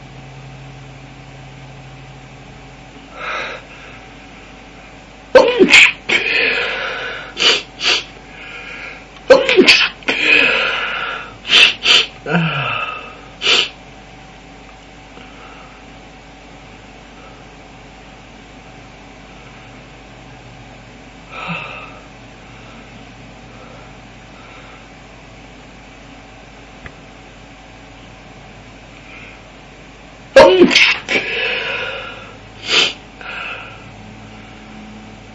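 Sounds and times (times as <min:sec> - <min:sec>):
man stifling a sound: 0:05.3 - 0:13.8, 0:30.4 - 0:33.9.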